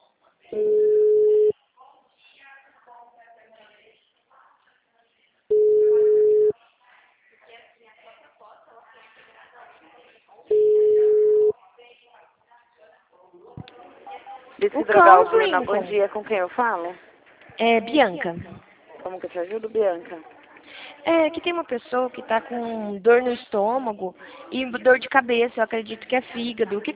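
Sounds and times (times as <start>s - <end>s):
speech: 0.5s - 0.8s, 14.7s - 20.3s, 21.0s - 26.9s
telephone ringing tones of a call being forwarded: 0.6s - 1.5s, 5.5s - 6.5s, 10.5s - 11.5s.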